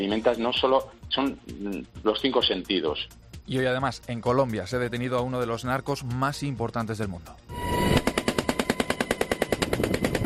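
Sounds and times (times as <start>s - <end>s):
speech: 0.0s - 7.9s
machine gun fire from a helicopter: 8.0s - 10.2s.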